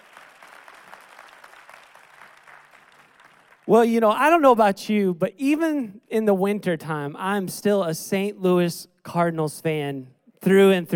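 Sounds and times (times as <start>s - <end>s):
audience hand clapping: 0.0s - 3.7s
speech: 3.7s - 10.9s.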